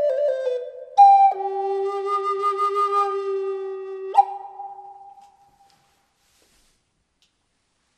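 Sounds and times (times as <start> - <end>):
flute with reverb: 0.0 - 5.9.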